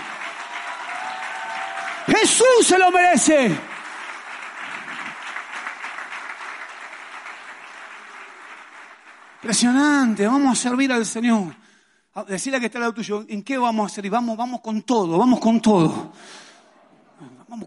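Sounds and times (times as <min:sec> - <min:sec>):
audience applause: 0:00.0 - 0:10.4
speech: 0:02.1 - 0:03.7, 0:09.4 - 0:11.6, 0:12.2 - 0:16.4.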